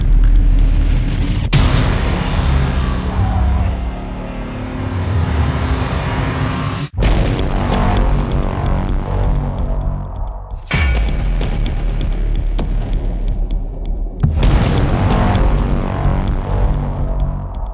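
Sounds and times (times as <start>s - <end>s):
epic movie trailer cinematic music: 0.0s - 17.7s.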